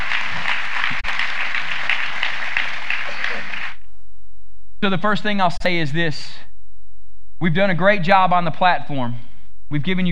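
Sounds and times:
audience clapping hands: 0.0 - 3.8
speech: 4.8 - 6.5, 7.4 - 10.1.

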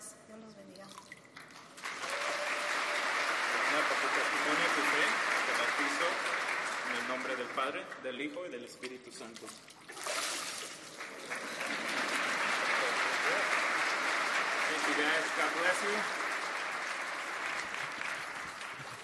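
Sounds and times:
speech: 0.3 - 1.4, 3.8 - 9.8, 15.1 - 16.2
audience applause: 1.7 - 8.0, 10.8 - 19.0.

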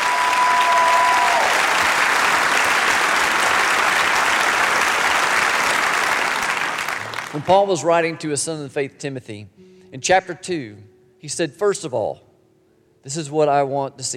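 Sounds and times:
audience applause: 0.0 - 7.8
speech: 7.4 - 12.3, 13.0 - 14.1.

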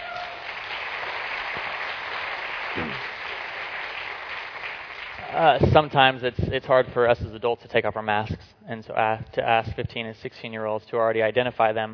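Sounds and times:
audience applause: 0.0 - 5.6
speech: 5.4 - 11.9.

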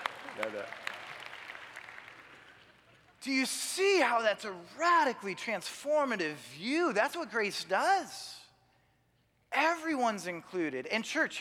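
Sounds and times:
audience applause: 0.0 - 2.8
speech: 0.4 - 0.9, 3.2 - 8.4, 9.5 - 11.3.

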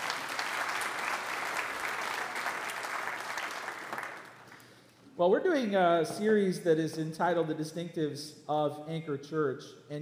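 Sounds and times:
audience applause: 0.0 - 4.8
speech: 5.2 - 9.9.

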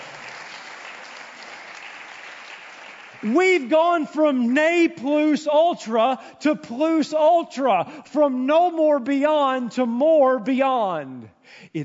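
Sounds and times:
audience clapping: 0.0 - 5.1
speech: 3.2 - 11.8.

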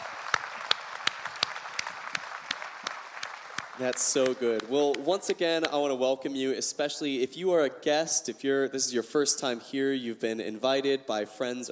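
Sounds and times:
audience applause: 0.0 - 5.4
speech: 3.8 - 11.7.

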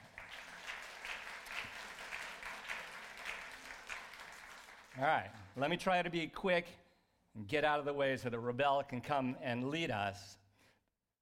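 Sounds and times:
audience applause: 0.0 - 5.6
speech: 5.0 - 6.8, 7.4 - 10.4.

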